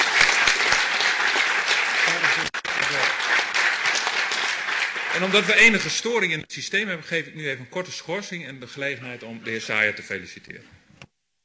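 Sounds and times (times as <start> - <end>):
crowd applause: 0.0 - 6.1
speech: 5.2 - 10.8.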